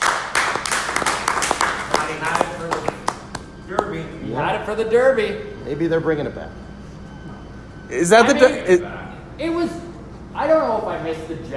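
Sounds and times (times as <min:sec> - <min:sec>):
applause: 0:00.0 - 0:03.9
speech: 0:03.9 - 0:06.6, 0:07.9 - 0:09.8, 0:10.4 - 0:11.5.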